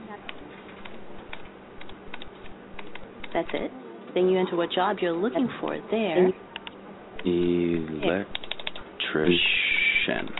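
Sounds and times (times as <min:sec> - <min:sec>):
computer keyboard typing a website address: 0:00.2 - 0:03.7, 0:08.0 - 0:08.9
speech: 0:03.3 - 0:06.5, 0:07.2 - 0:08.4, 0:09.1 - 0:10.3.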